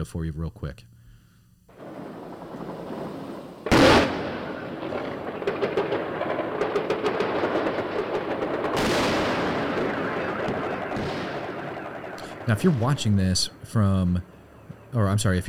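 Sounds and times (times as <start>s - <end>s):
speech: 0.0s - 0.9s, 12.5s - 14.3s, 14.9s - 15.4s
thousands of tracer rounds going up into the sky: 1.7s - 13.6s.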